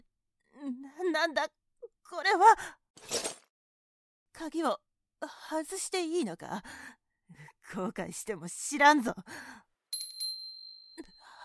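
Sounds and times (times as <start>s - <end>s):
speech: 1.0s - 3.3s, 4.4s - 9.7s
small bell ringing: 9.9s - 11.4s.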